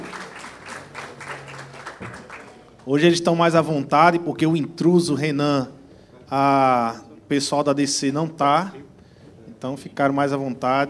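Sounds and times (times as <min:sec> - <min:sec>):
audience applause: 0:00.0 - 0:02.8
faint murmur of voices: 0:00.0 - 0:10.8
speech: 0:02.8 - 0:08.9, 0:09.6 - 0:10.8.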